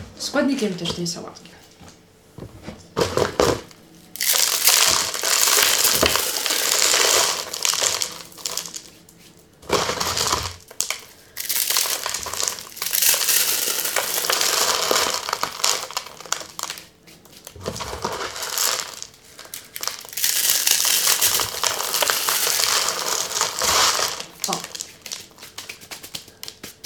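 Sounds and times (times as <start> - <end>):
speech: 0.2 - 2.6
instant noodle packet rustling: 4.1 - 9.1, 9.8 - 26.8
dry instant noodles crushed by hand: 4.1 - 26.8.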